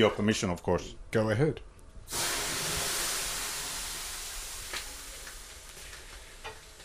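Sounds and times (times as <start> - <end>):
speech: 0.0 - 2.3
water thrown on hot sauna stones hissing: 2.1 - 6.8.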